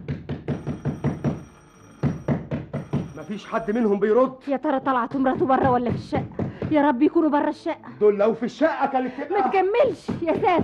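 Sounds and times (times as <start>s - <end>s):
heavy knocking on an apartment door: 0.0s - 3.2s, 5.1s - 6.9s
speech: 3.3s - 10.6s.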